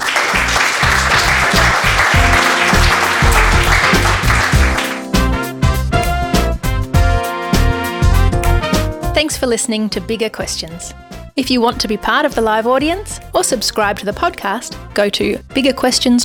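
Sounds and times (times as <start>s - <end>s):
live audience applauding the guest at the close of a talk event: 0.0s - 5.5s
music: 0.0s - 16.2s
speech: 9.2s - 16.2s.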